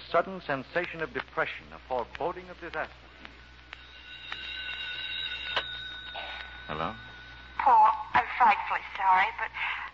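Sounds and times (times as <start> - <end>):
speech: 0.1 - 3.1, 6.7 - 9.9
telephone ringing: 3.7 - 9.4.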